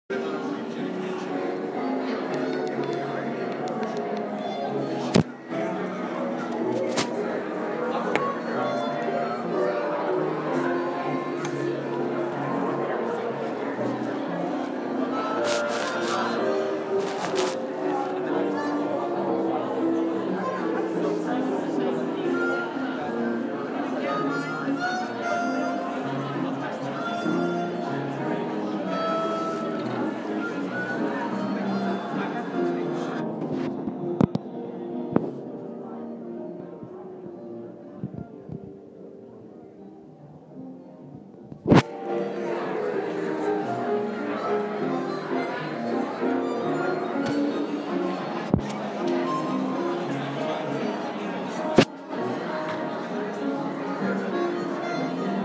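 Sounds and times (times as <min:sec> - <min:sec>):
theatre foyer music: 0:00.1 - 0:55.4.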